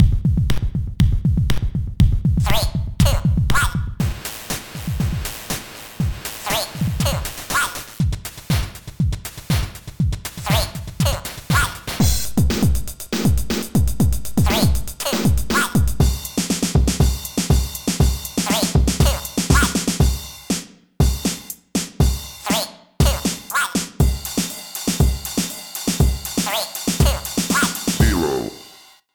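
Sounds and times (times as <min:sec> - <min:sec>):
rhythm: 0:00.0 - 0:28.8.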